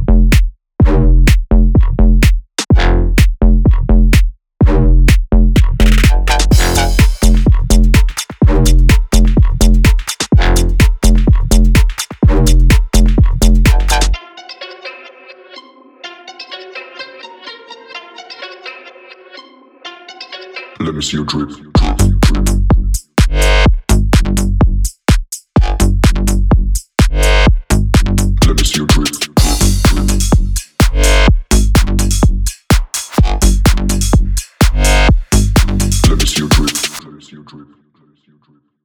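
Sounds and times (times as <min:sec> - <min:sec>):
G house bass house music: 0:00.0 - 0:14.2, 0:20.8 - 0:37.0.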